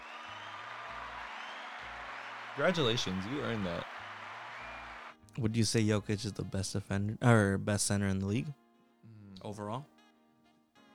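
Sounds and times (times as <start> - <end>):
applause: 0.0 - 5.2
speech: 2.6 - 4.0, 5.4 - 8.6, 9.4 - 9.9.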